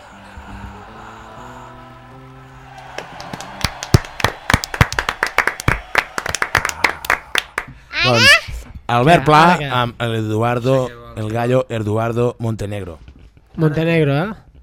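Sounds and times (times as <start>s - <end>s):
audience clapping: 2.2s - 8.4s
speech: 8.1s - 13.0s, 13.6s - 14.4s.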